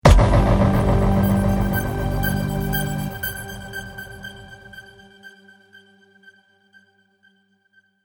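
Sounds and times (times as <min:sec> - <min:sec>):
smash and sparkle trailer hit: 0:00.0 - 0:04.8.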